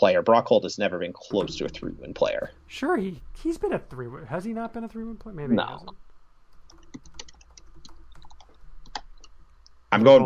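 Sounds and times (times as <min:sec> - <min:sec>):
speech: 0:00.0 - 0:06.0, 0:09.9 - 0:10.2
typing on a computer keyboard: 0:06.5 - 0:09.4.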